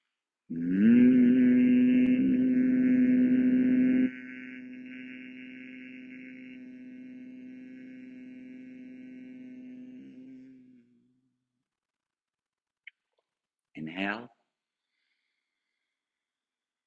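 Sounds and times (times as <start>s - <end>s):
speech: 0.5s - 0.9s
person humming on the exhale: 0.5s - 10.9s.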